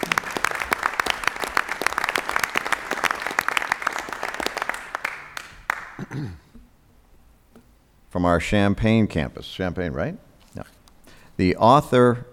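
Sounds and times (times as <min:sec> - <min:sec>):
audience applause: 0:00.0 - 0:06.4
speech: 0:06.1 - 0:06.4, 0:08.1 - 0:10.8, 0:11.4 - 0:12.3.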